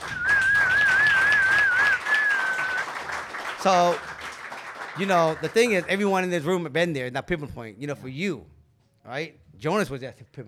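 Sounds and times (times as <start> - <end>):
loud wavering whistle: 0.0 - 3.0
audience cheering: 0.0 - 5.8
speech: 3.6 - 4.1, 5.0 - 10.4.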